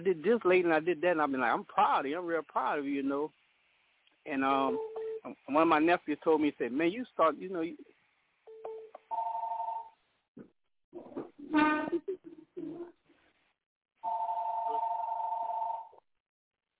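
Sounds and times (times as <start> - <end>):
speech: 0.0 - 3.4, 4.2 - 7.9, 10.4 - 12.9
telephone ringing: 8.5 - 10.0, 14.0 - 16.0.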